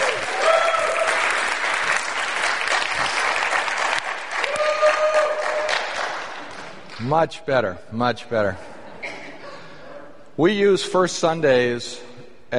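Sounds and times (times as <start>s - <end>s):
audience applause: 0.0s - 6.9s
faint whoops and cheers: 0.3s - 1.2s, 4.4s - 5.8s
speech: 7.0s - 8.7s, 10.4s - 12.5s.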